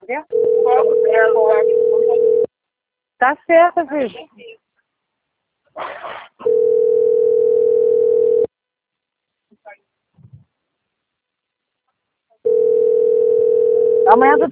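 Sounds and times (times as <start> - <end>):
telephone dial tone after a dropped call: 0.3 - 2.5, 6.4 - 8.5, 12.5 - 14.2
speech: 3.2 - 4.6, 14.1 - 14.5.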